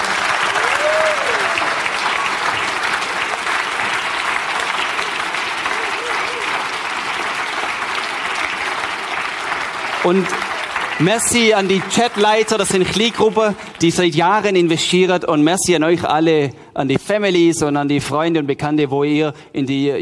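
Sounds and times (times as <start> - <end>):
audience applause: 0.0 - 14.7
speech: 10.1 - 10.4, 11.0 - 20.0.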